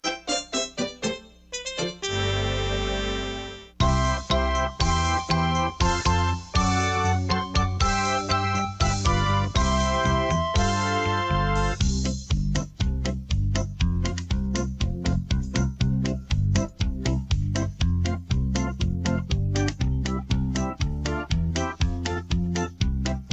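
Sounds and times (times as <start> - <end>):
instrumental music: 0.0 - 23.3.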